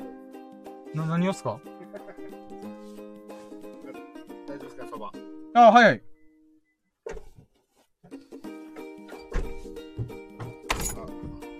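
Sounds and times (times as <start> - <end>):
speech: 0.9 - 2.1, 4.6 - 6.1
door being locked: 10.4 - 11.4.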